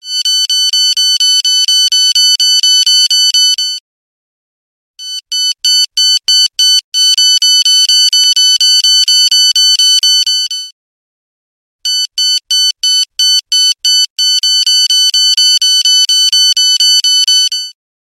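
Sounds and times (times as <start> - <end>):
morning alarm: 0.0 - 3.8, 5.0 - 10.8, 11.8 - 17.8.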